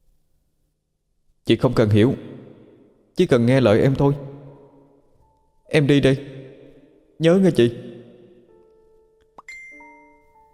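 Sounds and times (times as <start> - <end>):
speech: 1.5 - 2.3, 3.2 - 4.3, 5.7 - 6.3, 7.2 - 7.8
telephone ringing with a bright electronic melody: 9.5 - 10.5.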